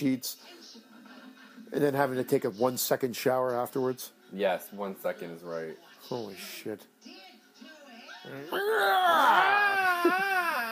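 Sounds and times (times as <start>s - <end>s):
speech: 0.0s - 0.6s, 1.7s - 7.2s, 8.2s - 10.5s
scream: 8.5s - 10.7s.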